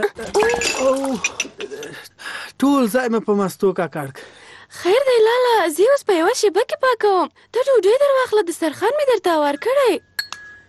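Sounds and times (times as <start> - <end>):
speech: 0.0 - 10.1
stack of crockery clinking while carried: 0.2 - 1.9.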